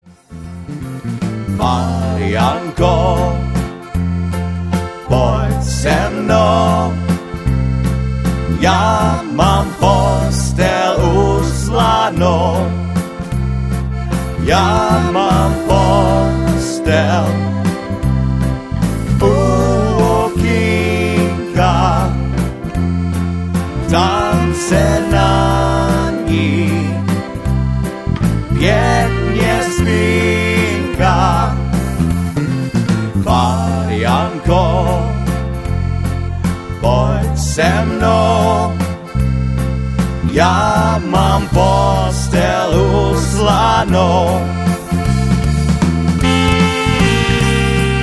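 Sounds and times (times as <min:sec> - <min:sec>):
waltz music: 0:00.1 - 0:48.0.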